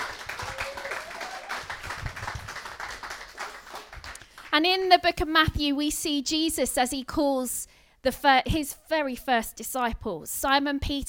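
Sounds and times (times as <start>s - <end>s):
crowd cheering: 0.0s - 4.2s
audience clapping: 0.0s - 4.6s
speech: 4.6s - 11.0s.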